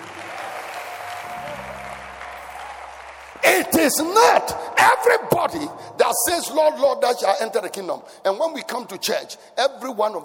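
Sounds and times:
audience clapping hands: 0:00.0 - 0:04.7
speech: 0:03.6 - 0:10.2.

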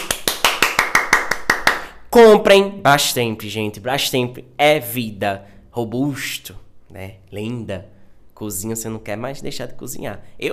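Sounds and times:
hands clapping: 0:00.0 - 0:02.0
speech: 0:02.2 - 0:10.5.

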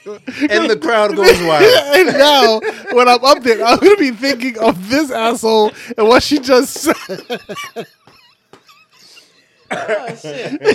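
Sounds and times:
laughter: 0:00.0 - 0:05.7, 0:06.8 - 0:10.7
speech: 0:00.0 - 0:08.0, 0:09.7 - 0:10.7
person choking and coughing: 0:09.7 - 0:10.7.

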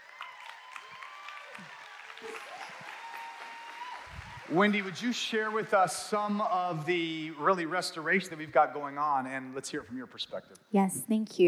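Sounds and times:
crowd applause: 0:00.0 - 0:07.7
speech: 0:01.6 - 0:02.8, 0:04.5 - 0:11.4.

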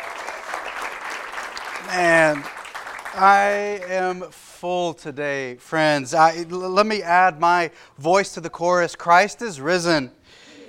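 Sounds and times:
audience applauding: 0:00.0 - 0:04.1
speech: 0:01.9 - 0:02.6, 0:03.2 - 0:10.4.

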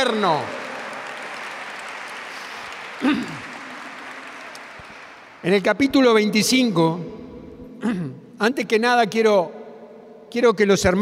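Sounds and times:
speech: 0:00.0 - 0:00.6, 0:03.0 - 0:03.4, 0:05.4 - 0:07.2, 0:07.8 - 0:09.6, 0:10.3 - 0:10.9
audience applauding: 0:00.0 - 0:06.0.

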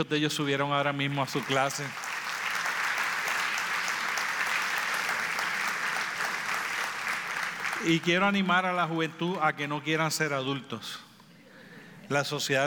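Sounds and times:
speech: 0:00.0 - 0:02.1, 0:07.8 - 0:11.1, 0:12.1 - 0:12.6
audience applauding: 0:01.2 - 0:08.3.

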